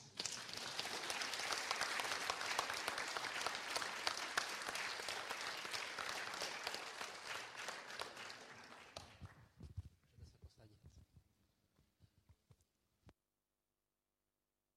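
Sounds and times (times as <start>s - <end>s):
audience applauding: 0.1s - 9.6s.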